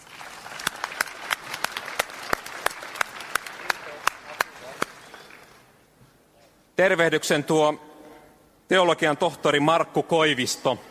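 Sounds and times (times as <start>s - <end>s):
audience applause: 0.0s - 5.6s
speech: 6.8s - 7.8s, 8.7s - 10.8s.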